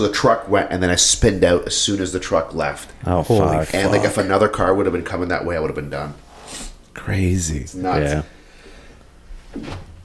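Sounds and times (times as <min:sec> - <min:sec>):
speech: 0:00.0 - 0:08.4, 0:09.5 - 0:09.9
person sneezing: 0:03.6 - 0:04.3.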